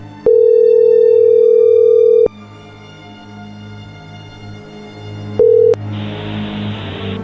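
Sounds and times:
phone call ringing tone: 0.3s - 2.3s, 5.4s - 5.8s.

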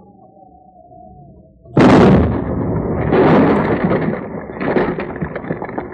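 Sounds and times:
rumbling crackling roar: 1.2s - 5.9s
explosive charge blast: 1.8s - 5.9s.

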